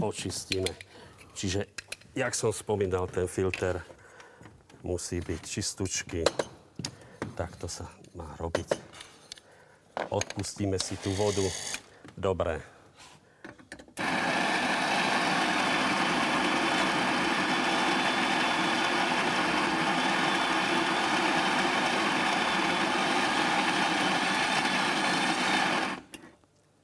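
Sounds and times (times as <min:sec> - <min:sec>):
speech: 0:00.0 - 0:04.0, 0:04.8 - 0:06.5, 0:07.4 - 0:08.8, 0:10.1 - 0:12.8
grinder running: 0:14.0 - 0:26.2.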